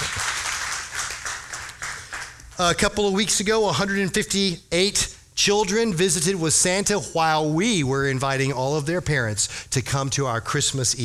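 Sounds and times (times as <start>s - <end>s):
church audience clapping: 0.0s - 2.8s
speech: 2.6s - 11.0s.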